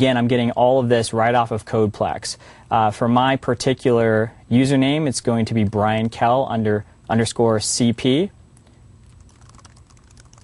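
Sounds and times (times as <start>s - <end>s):
speech: 0.0s - 8.4s
typing on a computer keyboard entering a CodePlex password: 9.0s - 10.4s.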